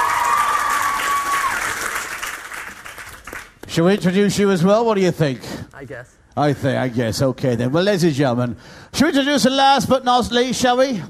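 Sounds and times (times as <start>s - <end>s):
audience cheering: 0.0s - 2.4s
audience applauding: 0.0s - 3.7s
speech: 3.7s - 11.0s.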